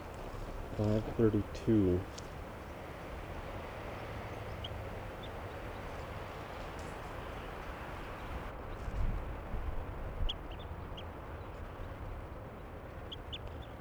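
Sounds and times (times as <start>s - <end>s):
low throaty bird calls: 0.0s - 8.5s
noise: 0.0s - 13.8s
speech: 0.8s - 2.2s.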